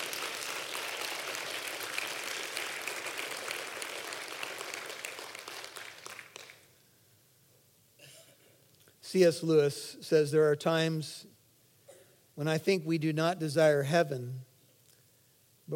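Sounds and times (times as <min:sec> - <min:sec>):
audience clapping: 0:00.0 - 0:06.7
speech: 0:09.1 - 0:11.3, 0:12.4 - 0:14.5.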